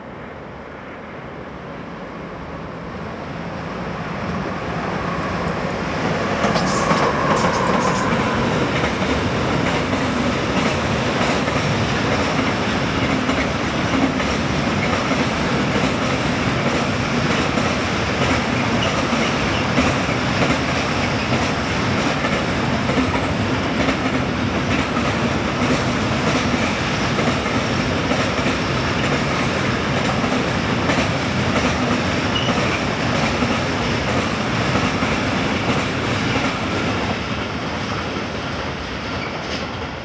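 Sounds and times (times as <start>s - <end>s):
freight train rolling past on the Simplon line: 0.0s - 40.0s
brief bright squeal: 32.3s - 32.6s.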